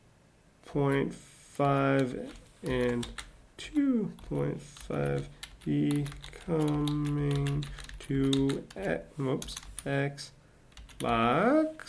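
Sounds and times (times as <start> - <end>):
speech: 0.7 - 10.4, 11.0 - 11.8
typing on a computer keyboard: 2.3 - 3.3, 4.2 - 9.8, 10.7 - 11.2.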